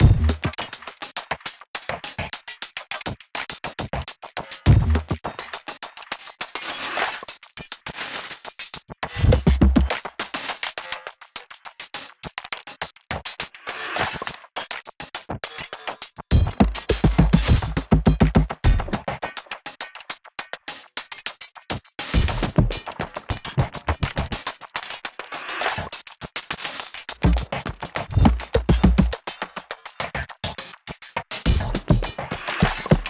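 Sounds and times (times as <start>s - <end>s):
drum music: 0.0s - 0.5s, 4.7s - 5.1s, 9.2s - 10.0s, 16.3s - 19.0s, 22.2s - 24.4s, 27.2s - 29.2s, 31.5s - 33.0s.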